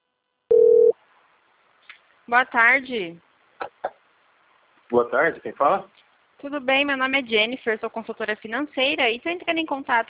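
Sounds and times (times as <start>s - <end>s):
telephone line tone: 0.5s - 0.9s
faint hiss: 1.0s - 9.2s
speech: 2.3s - 3.3s, 4.9s - 10.0s.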